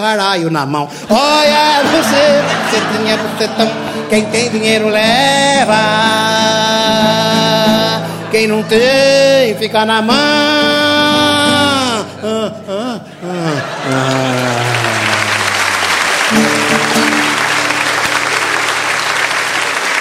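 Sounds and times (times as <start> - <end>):
speech: 0.0 - 7.3, 8.3 - 10.8, 12.2 - 15.1
person singing with drawn-out, bending tones: 1.0 - 15.5
laughter: 1.2 - 6.0, 7.4 - 19.9
audience applause after a bawdy stand-up comedy number: 13.4 - 19.9.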